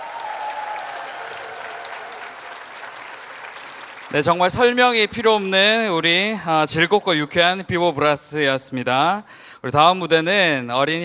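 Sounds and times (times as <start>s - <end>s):
crowd applauding after a brass performance: 0.0s - 5.0s
speech: 4.1s - 11.0s.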